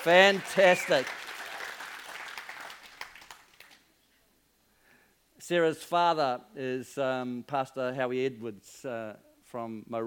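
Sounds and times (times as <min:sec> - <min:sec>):
speech: 0:00.0 - 0:01.2, 0:05.5 - 0:10.0
audience clapping: 0:00.0 - 0:03.9.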